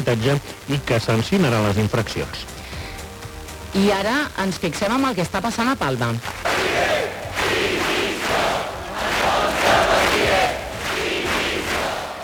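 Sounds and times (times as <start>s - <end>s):
speech: 0.1s - 2.6s, 3.7s - 6.9s
large crowd of protesters shouting chants in Palma: 6.4s - 12.2s.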